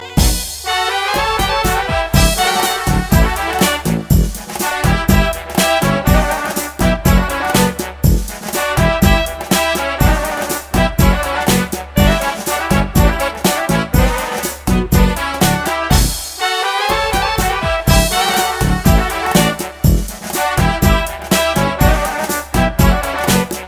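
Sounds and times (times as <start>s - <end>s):
Balkan music: 0.0s - 23.6s.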